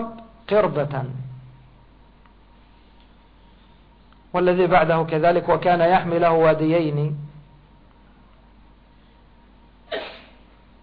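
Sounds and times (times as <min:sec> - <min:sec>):
speech: 0:00.0 - 0:01.2, 0:04.4 - 0:07.2
sneeze: 0:09.9 - 0:10.5.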